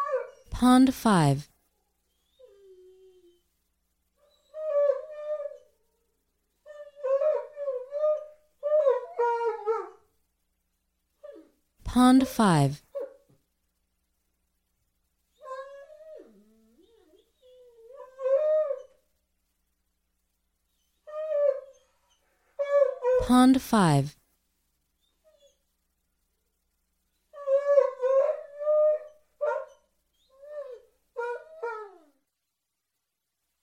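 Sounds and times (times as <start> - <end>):
Dobermann howling and whining: 0.0 - 0.5, 2.1 - 3.4, 4.2 - 10.0, 15.3 - 19.0, 20.7 - 23.2, 27.3 - 32.2
speech: 0.6 - 1.5, 12.0 - 12.8, 23.3 - 24.2.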